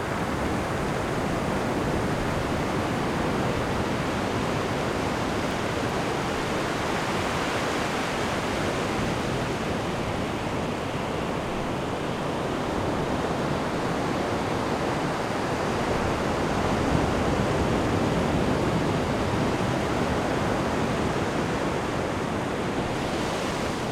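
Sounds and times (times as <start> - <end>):
big surf ocean waves: 0.0 - 23.9.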